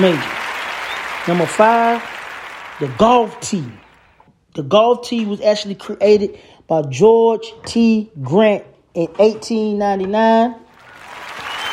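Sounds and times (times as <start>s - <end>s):
speech: 0.0s - 0.3s, 1.2s - 2.1s, 2.8s - 3.8s, 4.6s - 10.6s
applause sound effect: 0.0s - 4.2s, 10.7s - 11.7s.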